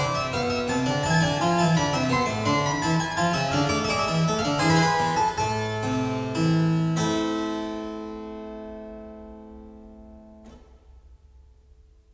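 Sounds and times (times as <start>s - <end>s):
baroque courante dance piece: 0.0s - 7.4s.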